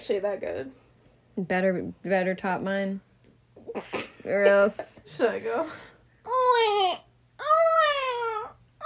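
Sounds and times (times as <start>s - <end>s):
speech: 0.0s - 7.0s
person imitating a baby crying: 6.3s - 8.8s.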